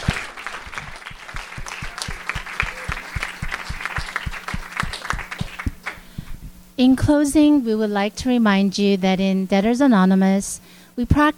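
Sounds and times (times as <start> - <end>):
audience applause: 0.0 - 6.0
speech: 6.8 - 11.3.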